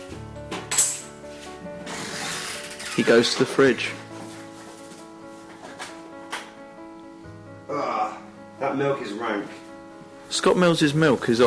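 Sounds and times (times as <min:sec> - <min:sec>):
crockery clinking while making a cup of tea: 0:00.5 - 0:01.1
speech: 0:03.0 - 0:04.0, 0:08.8 - 0:09.6, 0:10.3 - 0:11.4.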